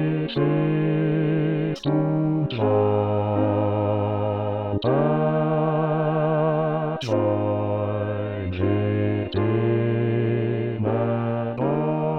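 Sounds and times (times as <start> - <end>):
bass voice singing a sanctus: 0.0 - 12.1.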